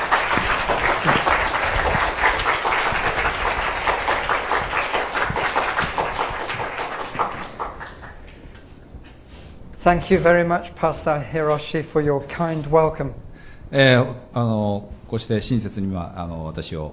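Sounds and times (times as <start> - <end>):
audience applause: 0.0 - 8.4
speech: 9.9 - 16.9.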